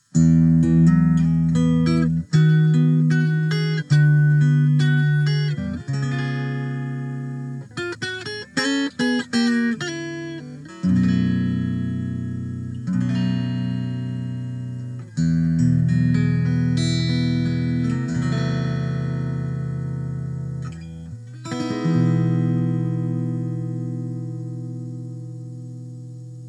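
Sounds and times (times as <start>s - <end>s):
short instrumental guitar lick: 0.0s - 26.4s.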